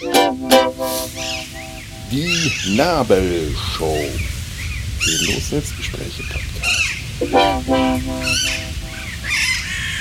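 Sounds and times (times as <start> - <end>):
parakeets squabbling: 0.0 - 2.8, 6.2 - 10.0
speech: 2.1 - 4.3, 5.0 - 8.6
crows squabbling: 8.2 - 10.0.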